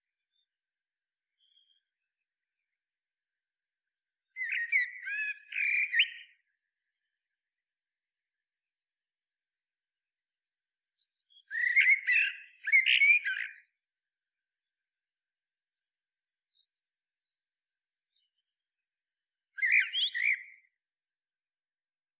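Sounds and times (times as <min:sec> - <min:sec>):
common blackbird warbling song: 0:04.4 - 0:06.5, 0:11.0 - 0:13.7, 0:19.6 - 0:20.7.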